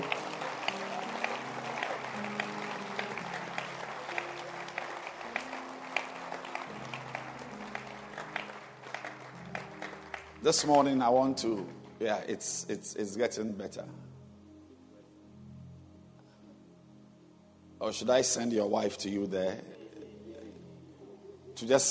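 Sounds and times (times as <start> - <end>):
audience applause: 0.0 - 10.9
speech: 10.4 - 14.1, 17.9 - 19.8, 21.6 - 21.8.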